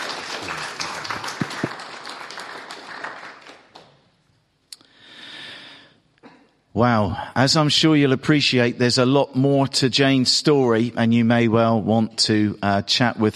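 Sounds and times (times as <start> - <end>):
audience applause: 0.0 - 4.0
speech: 6.8 - 13.3.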